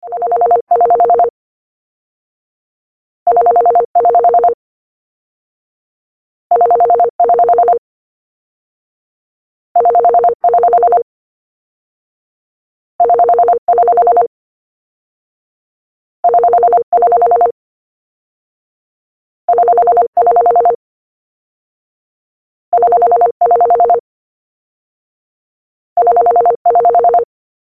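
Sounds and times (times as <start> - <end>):
landline phone ringtone: 0.1 - 1.3, 3.3 - 4.6, 6.5 - 7.8, 9.8 - 11.1, 13.0 - 14.3, 16.3 - 17.6, 19.5 - 20.8, 22.8 - 24.0, 26.0 - 27.3.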